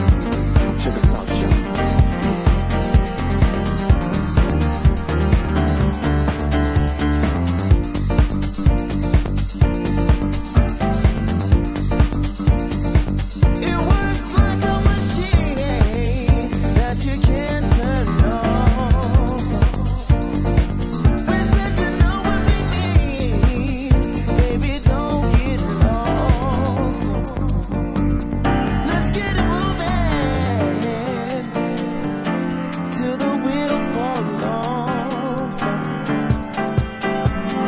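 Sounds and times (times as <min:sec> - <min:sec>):
piano mix: 0:00.0 - 0:37.6.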